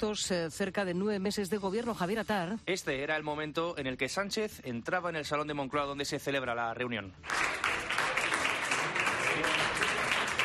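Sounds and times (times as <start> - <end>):
speech: 0.0 - 7.9
applause from cabinet ministers: 7.2 - 10.4.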